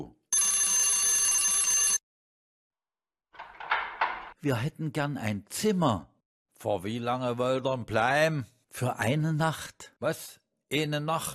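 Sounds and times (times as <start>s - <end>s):
doorbell ringing: 0.3s - 2.0s
speech: 4.4s - 11.3s.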